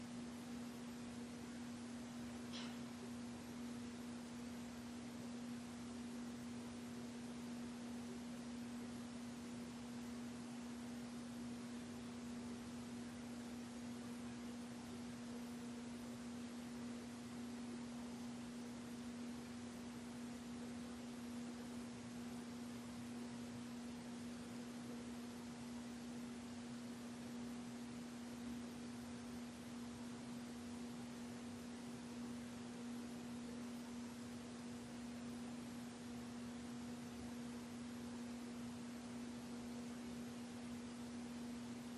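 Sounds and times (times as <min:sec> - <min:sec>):
ballroom static noise: 0:00.0 - 0:41.9.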